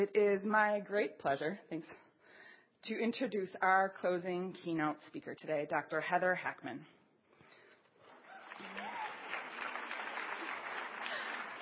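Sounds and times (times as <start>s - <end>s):
speech: 0.0s - 2.0s, 2.8s - 7.0s
audience clapping: 8.0s - 11.6s.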